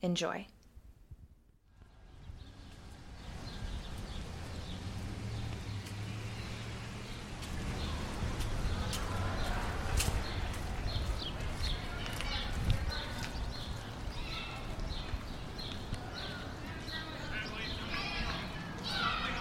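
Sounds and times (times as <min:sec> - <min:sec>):
low street rumble: 0:01.6 - 0:19.3
footstep-like clicks: 0:01.8 - 0:17.8
crowd chatter near Eastern Market: 0:07.6 - 0:19.3.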